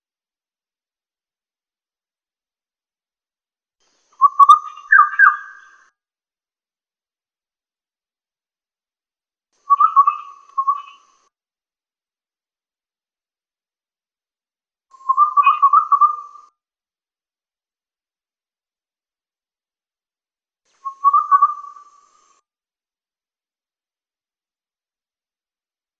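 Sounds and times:
Kalimantan striped wren-babbler chirping: 4.2 - 5.8, 9.7 - 11.1, 15.0 - 16.4, 20.8 - 22.2.

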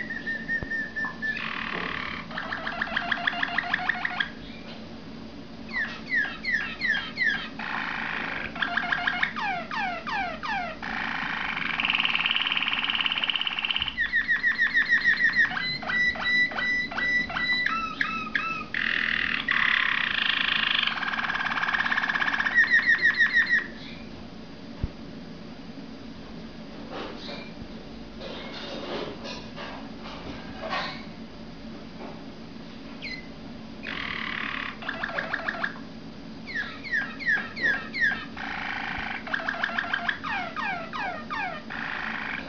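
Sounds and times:
Waterslager canary trilling song: 0.0 - 4.8, 5.6 - 24.1, 33.0 - 42.4.

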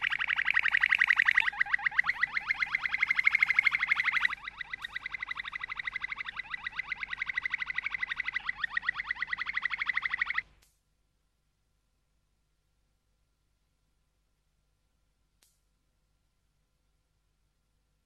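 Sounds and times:
Waterslager canary song: 0.0 - 10.5.

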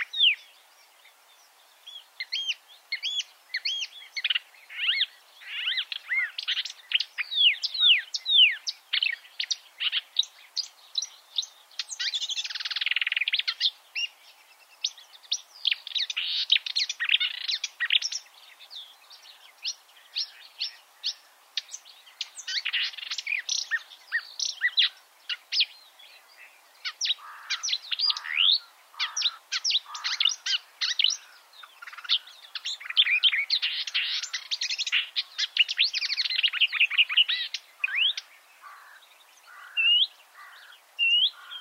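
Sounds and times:
marsh warbler jumbled song: 0.0 - 41.5.

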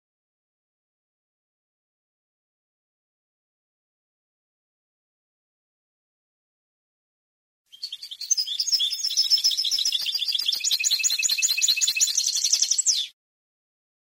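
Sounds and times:
European goldfinch song: 7.7 - 13.2.

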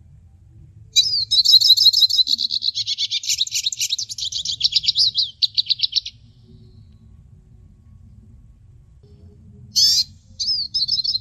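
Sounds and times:
hooded siskin twittering: 1.0 - 6.2, 9.8 - 11.1.

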